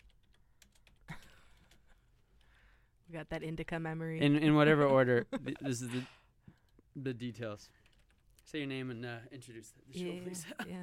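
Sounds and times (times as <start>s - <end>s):
typing on a computer keyboard: 0.0s - 2.5s, 7.8s - 8.4s
speech: 3.1s - 6.2s, 7.0s - 7.8s, 8.5s - 10.8s.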